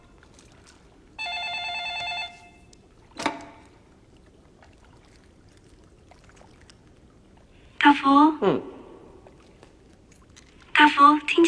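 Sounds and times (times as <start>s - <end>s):
telephone ringing with a bright electronic tone: 1.2s - 2.7s
sharp clunk: 3.2s - 3.6s
speech: 7.9s - 8.7s.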